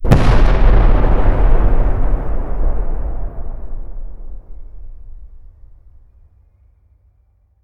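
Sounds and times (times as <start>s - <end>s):
tension impact hit: 0.0s - 6.1s.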